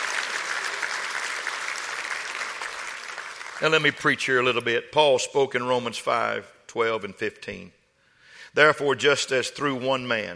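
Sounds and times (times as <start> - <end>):
audience clapping hands: 0.0 - 4.1
speech: 3.6 - 7.8, 8.5 - 10.3.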